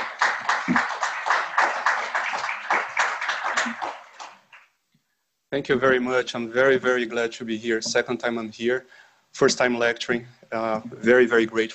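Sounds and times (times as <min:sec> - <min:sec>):
lecture audience applause welcoming a speaker: 0:00.0 - 0:04.7
speech: 0:05.5 - 0:11.7.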